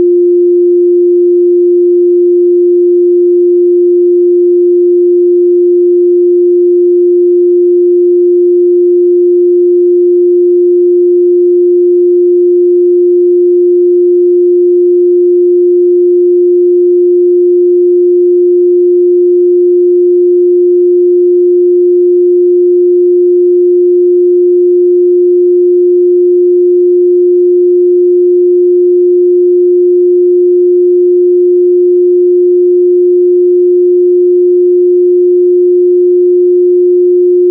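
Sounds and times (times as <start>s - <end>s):
sine tone: 0.0s - 37.4s.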